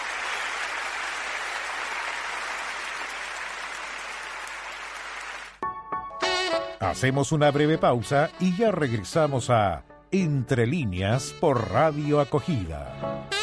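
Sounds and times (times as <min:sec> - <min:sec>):
large audience applause: 0:00.0 - 0:05.6
speech: 0:06.5 - 0:13.4.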